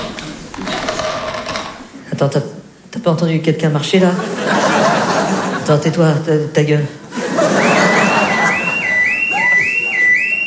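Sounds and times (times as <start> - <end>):
speech: 2.2 - 4.7, 5.7 - 7.5
laughter: 4.2 - 5.8, 7.0 - 10.4
alarm going off: 7.4 - 10.4.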